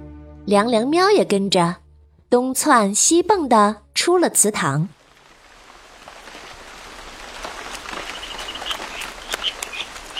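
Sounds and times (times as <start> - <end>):
speech: 0.5 - 5.0
heavy rain: 4.9 - 10.1.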